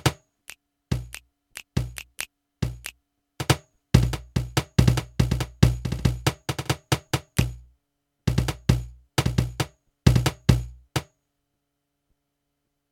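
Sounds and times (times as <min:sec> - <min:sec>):
Millenium NonaPad cajon kit: 0:00.0 - 0:00.2, 0:00.9 - 0:07.7, 0:08.3 - 0:11.1.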